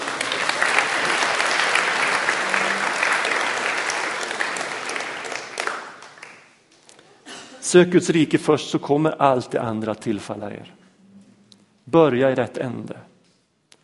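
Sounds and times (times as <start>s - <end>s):
audience applause: 0.0s - 6.6s
speech: 7.7s - 10.8s, 11.9s - 13.1s.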